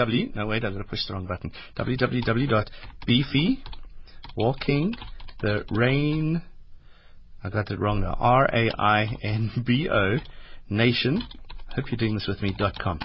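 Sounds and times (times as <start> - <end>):
speech: 0.0 - 3.8, 4.4 - 6.5, 7.4 - 13.0
typing on a computer keyboard: 2.2 - 5.8, 11.2 - 13.0.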